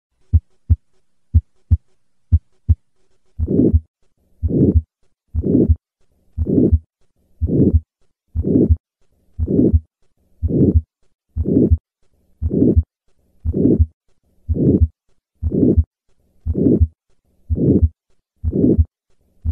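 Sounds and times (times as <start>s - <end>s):
normal heartbeats: 0.2s - 8.8s, 9.4s - 19.4s
whooshing murmurs of aortic stenosis: 3.4s - 5.8s, 6.4s - 8.8s, 9.4s - 11.8s, 12.4s - 13.9s, 14.5s - 15.9s, 16.5s - 19.4s.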